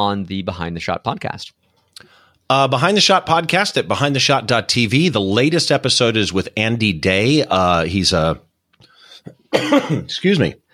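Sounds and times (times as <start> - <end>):
speech: 0.0 - 8.5, 9.2 - 10.6
person coughing: 9.2 - 10.2.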